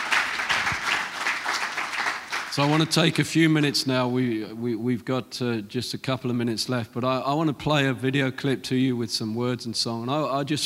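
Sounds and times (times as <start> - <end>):
audience clapping: 0.0 - 3.2
speech: 2.6 - 10.6.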